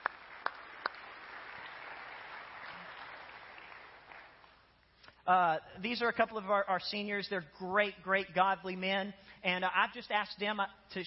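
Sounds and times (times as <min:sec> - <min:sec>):
audience applause: 0:00.0 - 0:04.5
speech: 0:05.3 - 0:11.0.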